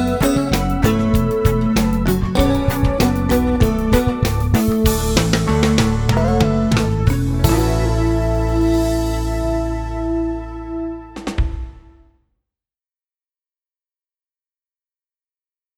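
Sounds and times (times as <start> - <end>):
reggae music: 0.0 - 12.0.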